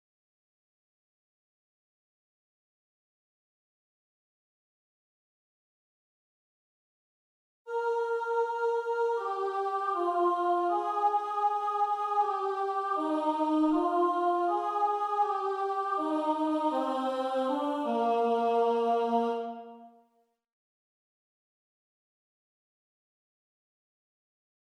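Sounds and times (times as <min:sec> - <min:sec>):
contralto voices singing: 0:07.7 - 0:19.9.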